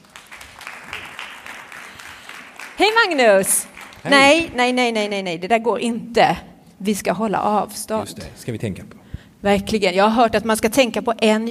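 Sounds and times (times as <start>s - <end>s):
crowd applause: 0.0s - 4.6s
speech: 2.8s - 11.5s.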